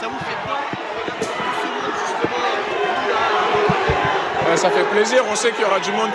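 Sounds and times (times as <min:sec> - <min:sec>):
scattered thumps: 0:00.0 - 0:05.2
crowd of fans murmuring while welcoming arriving players: 0:00.0 - 0:06.1
speech: 0:04.6 - 0:06.1.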